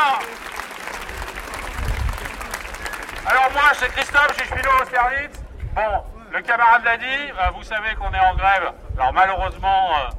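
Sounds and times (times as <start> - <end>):
large crowd clapping at a strike rally: 0.0 - 5.4
speech: 3.7 - 10.1.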